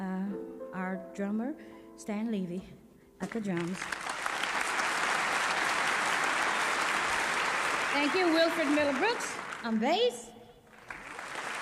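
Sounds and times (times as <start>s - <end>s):
speech: 1.0s - 4.0s, 7.9s - 10.4s
audience applause at a jazz concert: 3.7s - 9.8s, 10.7s - 11.6s.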